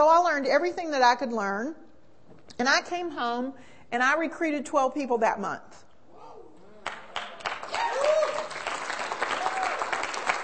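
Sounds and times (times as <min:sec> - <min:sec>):
speech: 0:00.0 - 0:01.8, 0:02.6 - 0:05.9
audience clapping: 0:06.8 - 0:10.4.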